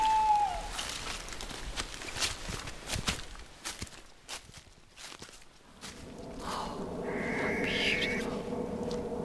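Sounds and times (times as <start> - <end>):
footsteps walking out of woodland over leafy ground: 0.5 - 6.8
steady low rumble: 5.7 - 9.2.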